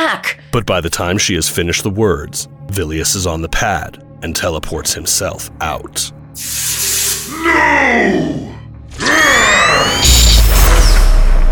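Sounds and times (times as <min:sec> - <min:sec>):
speech: 0:00.2 - 0:10.1
sci-fi energy beam fired from a staff: 0:06.4 - 0:07.4, 0:09.0 - 0:11.5.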